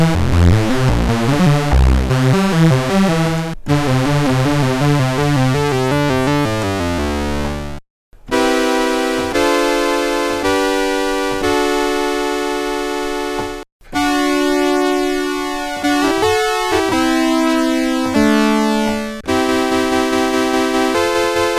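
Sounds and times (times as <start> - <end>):
Korg Mono Poly synthesizer: 0.0 - 21.5.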